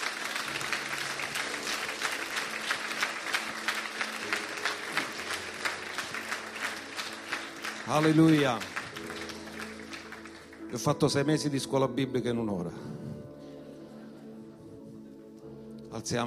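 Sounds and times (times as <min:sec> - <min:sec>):
audience applause: 0:00.0 - 0:10.9
speech: 0:07.9 - 0:08.8, 0:10.7 - 0:13.0, 0:16.0 - 0:16.2.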